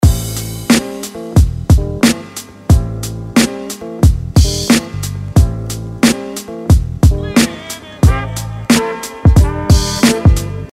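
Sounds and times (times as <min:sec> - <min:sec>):
music beat: 0:00.0 - 0:10.7.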